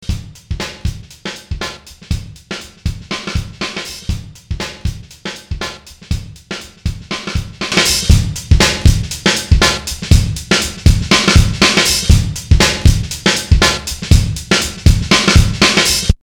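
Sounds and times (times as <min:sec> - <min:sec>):
bass drum: 0:00.0 - 0:16.2.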